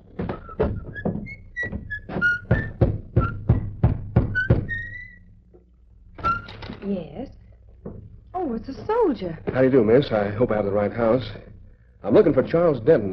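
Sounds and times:
knocking on a door: 0.2 - 5.0, 7.8 - 10.2, 12.1 - 13.0
speech: 9.1 - 13.1.

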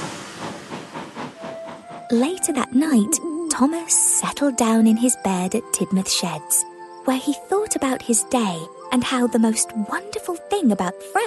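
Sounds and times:
steam engine puffing away: 0.0 - 2.6
speech: 2.1 - 11.2.

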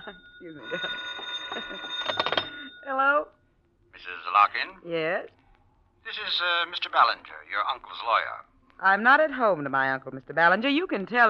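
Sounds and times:
telephone ringing: 0.0 - 3.0
speech: 0.1 - 1.1, 4.5 - 5.4, 6.1 - 11.2.

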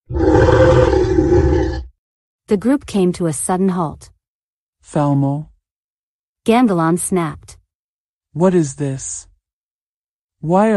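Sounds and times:
deep rumbling animal growl: 0.0 - 2.0
speech: 2.5 - 4.1, 4.8 - 5.5, 6.4 - 7.6, 8.4 - 9.3, 10.4 - 10.7.

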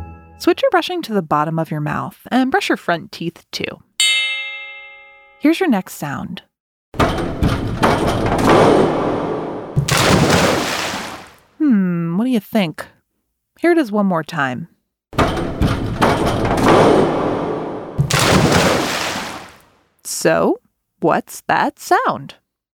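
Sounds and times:
speech: 0.4 - 3.9, 5.4 - 7.3, 11.8 - 13.0, 13.6 - 14.7, 20.2 - 22.4
diver bouncing on a diving board: 7.0 - 11.4, 15.2 - 19.6
diver splashing into a pool: 9.8 - 11.4, 18.0 - 19.7.

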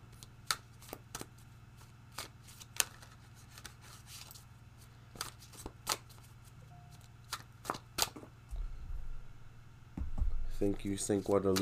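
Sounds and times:
low steady hum: 0.0 - 11.6
tarot cards being shuffled and drawn: 0.1 - 8.3, 10.9 - 11.6
speech: 10.6 - 11.6.

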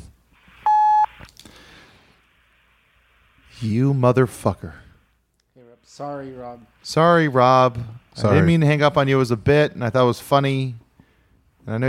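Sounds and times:
censorship bleep covering a word: 0.6 - 1.2
speech: 3.6 - 4.8, 5.9 - 10.8, 11.6 - 11.8.

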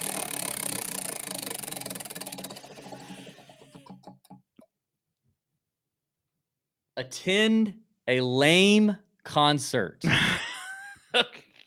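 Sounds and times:
prize wheel spinning: 0.0 - 4.4
speech: 7.0 - 10.2.

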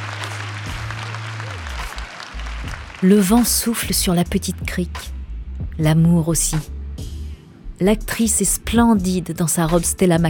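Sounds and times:
guests applauding at a beach wedding by the ocean: 0.0 - 4.2
speech: 3.0 - 5.1, 5.8 - 6.7, 7.8 - 10.2.

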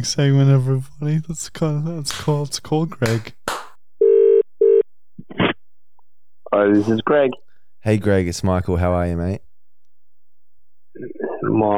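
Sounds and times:
speech: 0.0 - 3.4, 6.5 - 9.5, 11.0 - 11.7
telephone ringing for an outgoing call: 4.0 - 4.8.

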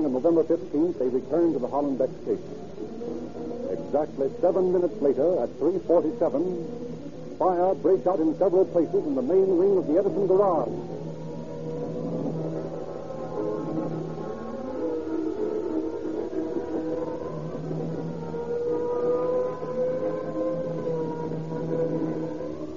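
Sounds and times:
speech: 0.0 - 2.8, 3.4 - 6.8, 7.4 - 10.9
fire engine siren wailing: 10.6 - 22.7.

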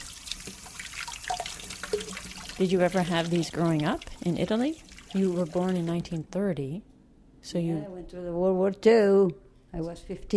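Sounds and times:
water splashing and dripping as hands are washed under a tap: 0.0 - 6.2
speech: 2.6 - 10.3.

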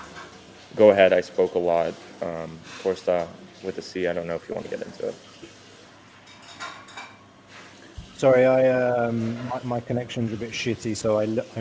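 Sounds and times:
water running from a tap: 0.0 - 11.5
speech: 0.7 - 5.4, 8.2 - 11.5
dishes clinking: 6.2 - 7.3.

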